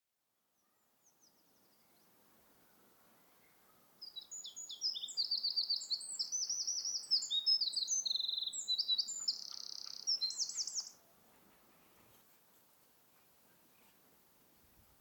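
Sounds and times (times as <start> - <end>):
Eurasian wren singing: 4.0 - 11.0.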